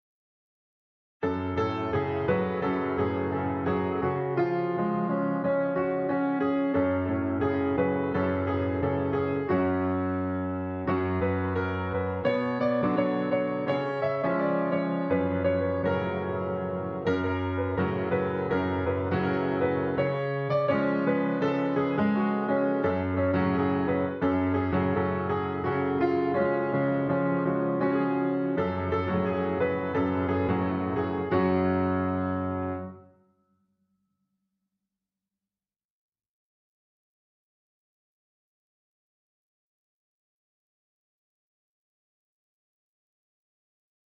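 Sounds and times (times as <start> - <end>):
piano: 1.2 - 33.5.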